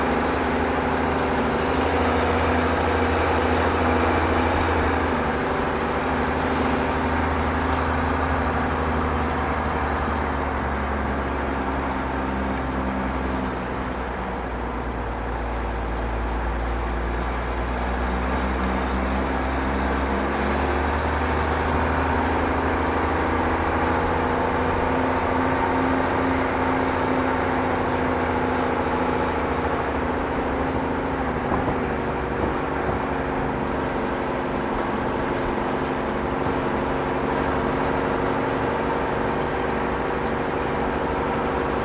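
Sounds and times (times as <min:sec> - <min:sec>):
traffic: 0:00.0 - 0:41.8
truck cab interior: 0:00.0 - 0:41.8.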